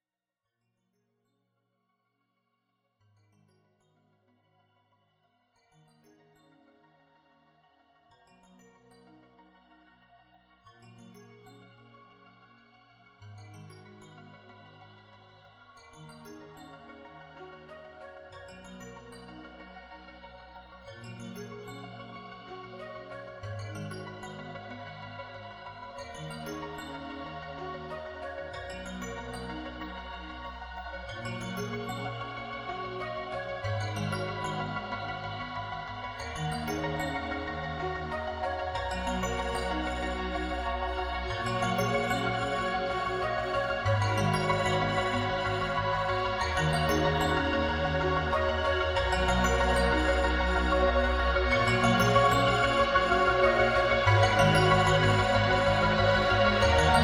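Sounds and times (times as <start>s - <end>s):
instrumental music mix: 31.6s - 57.0s.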